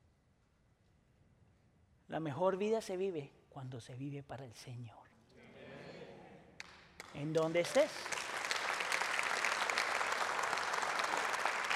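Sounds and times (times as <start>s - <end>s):
speech: 2.1s - 5.0s, 7.1s - 8.2s
audience applause: 7.0s - 11.7s.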